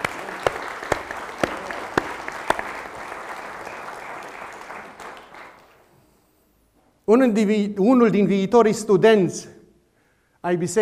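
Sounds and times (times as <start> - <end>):
audience applause: 0.0 - 5.9
speech: 7.1 - 9.5, 10.4 - 10.8.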